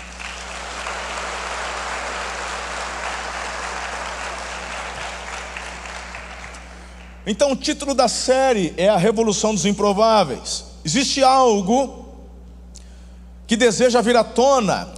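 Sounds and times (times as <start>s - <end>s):
audience applause: 0.0s - 7.2s
speech: 7.3s - 12.0s, 13.5s - 14.9s.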